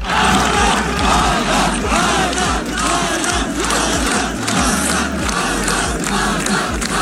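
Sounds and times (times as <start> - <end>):
crowd chanting a name in unison: 0.0 - 7.0
laughter: 0.0 - 7.0.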